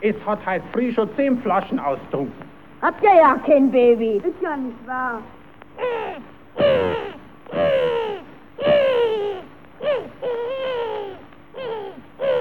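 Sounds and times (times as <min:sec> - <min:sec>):
speech: 0:00.0 - 0:08.0
seagulls screeching: 0:05.8 - 0:12.3.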